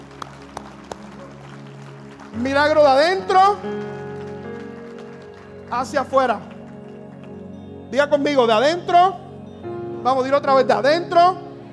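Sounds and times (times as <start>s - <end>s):
audience applause: 0.0s - 7.6s
speech: 2.3s - 4.0s, 5.7s - 6.5s, 7.9s - 9.2s, 10.0s - 11.4s.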